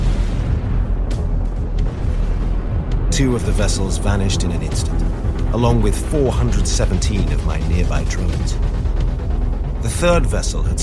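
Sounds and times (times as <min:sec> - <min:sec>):
nuclear explosion detonating: 0:00.0 - 0:05.6
speech: 0:03.2 - 0:08.9, 0:09.8 - 0:10.8.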